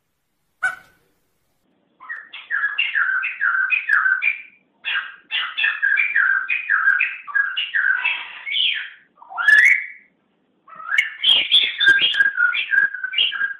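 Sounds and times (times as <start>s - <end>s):
songbird whistled phrases: 2.0s - 10.1s, 10.8s - 13.5s.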